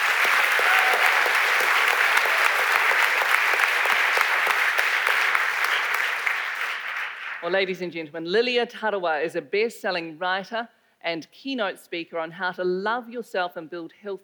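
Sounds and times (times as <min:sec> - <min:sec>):
audience applause: 0:00.0 - 0:07.5
speech: 0:07.5 - 0:14.2.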